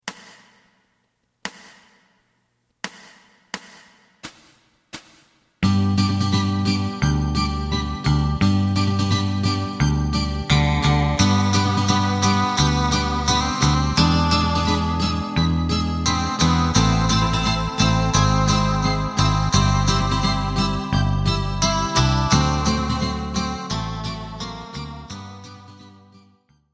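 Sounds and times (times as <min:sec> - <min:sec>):
bass: 0:05.6 - 0:26.7.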